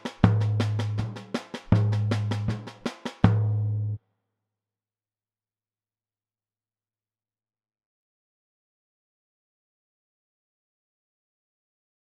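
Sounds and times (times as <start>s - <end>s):
samba music variations: 0.0s - 3.3s.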